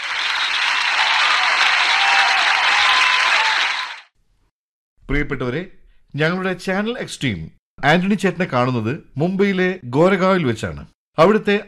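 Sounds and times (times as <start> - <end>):
studio audience applause welcoming a guest and interviewer: 0.0 - 4.1
speech: 5.1 - 11.6.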